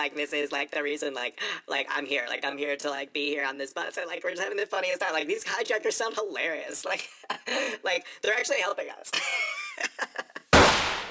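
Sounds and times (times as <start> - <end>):
speech: 0.0 - 10.2
gunshot: 10.6 - 11.0.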